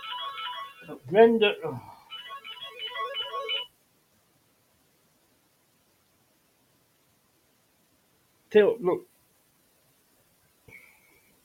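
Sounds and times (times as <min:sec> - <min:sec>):
mobile phone ringtone: 0:00.0 - 0:01.0, 0:02.1 - 0:03.7
speech: 0:00.9 - 0:01.9, 0:08.5 - 0:09.1.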